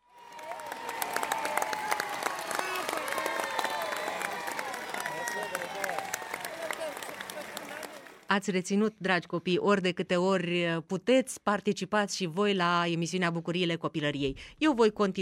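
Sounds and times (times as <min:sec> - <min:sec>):
children applauding: 0:00.0 - 0:08.3
speech: 0:08.4 - 0:15.2.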